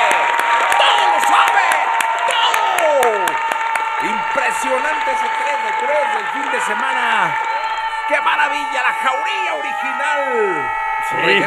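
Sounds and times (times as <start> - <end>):
crowd applauding and cheering: 0.0 - 11.4
speech: 4.6 - 7.5, 8.1 - 11.4.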